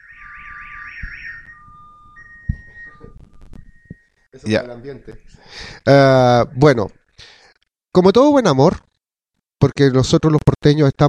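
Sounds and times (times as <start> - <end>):
electronic siren: 0.0 - 4.3
thumps: 1.0 - 4.2
speech: 4.4 - 7.0, 8.0 - 8.9, 9.6 - 11.0.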